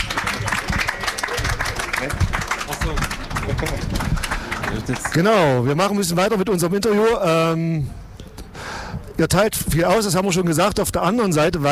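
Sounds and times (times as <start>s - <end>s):
audience applause: 0.0s - 5.7s
speech: 4.8s - 8.0s, 9.2s - 11.7s.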